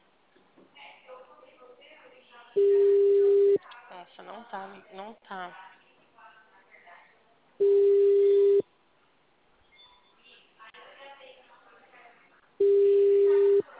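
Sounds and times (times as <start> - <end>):
telephone call tones on an unanswered call: 2.6 - 3.6, 7.6 - 8.6, 12.6 - 13.7
speech: 4.2 - 5.8.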